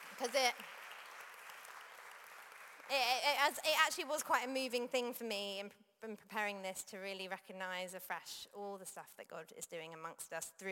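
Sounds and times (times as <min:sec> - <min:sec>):
church congregation applause: 0:00.0 - 0:03.5
speech: 0:00.2 - 0:00.8, 0:02.9 - 0:10.7.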